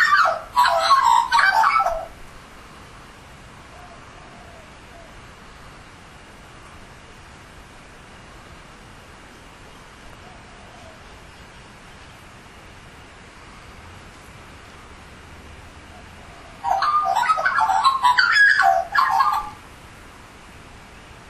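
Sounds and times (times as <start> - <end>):
Australian magpie giving mellow gurgling warbles: 0.0 - 2.2, 16.6 - 19.6.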